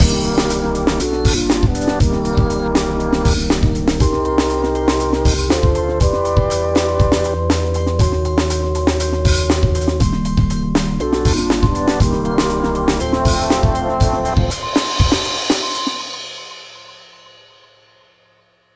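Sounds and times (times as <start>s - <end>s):
strange beat: 0.0s - 16.3s.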